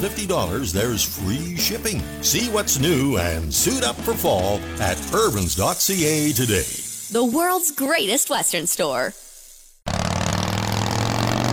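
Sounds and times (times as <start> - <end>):
speech: 0.0 - 9.2
motor trike engine revving: 9.9 - 11.5.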